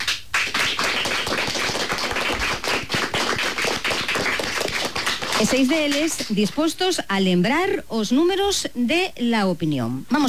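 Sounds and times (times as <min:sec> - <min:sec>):
schoolchildren applauding: 0:00.0 - 0:06.6
speech: 0:05.4 - 0:10.2.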